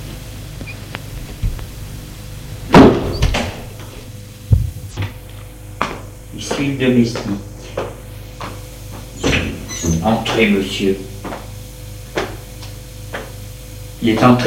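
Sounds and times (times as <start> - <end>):
door opening and closing: 2.7 - 5.2, 9.2 - 10.3
speech: 6.4 - 7.5, 10.0 - 11.1, 14.0 - 14.4.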